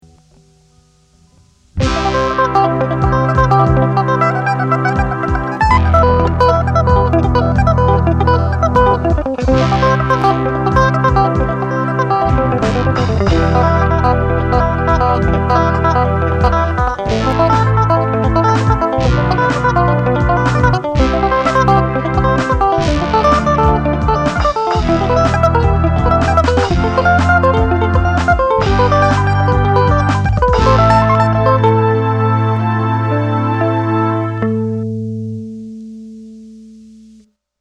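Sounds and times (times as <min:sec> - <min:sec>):
mix of arpeggios: 0:00.0 - 0:37.3.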